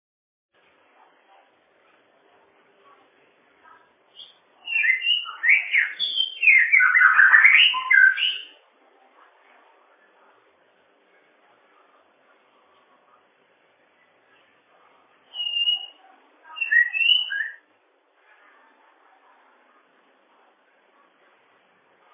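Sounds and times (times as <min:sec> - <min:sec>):
bird whistling song: 0:04.2 - 0:08.6, 0:15.3 - 0:17.6.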